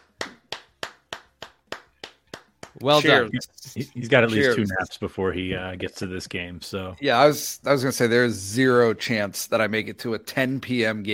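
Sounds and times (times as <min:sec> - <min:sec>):
sharp handclaps: 0:00.0 - 0:03.0
speech: 0:02.8 - 0:11.1.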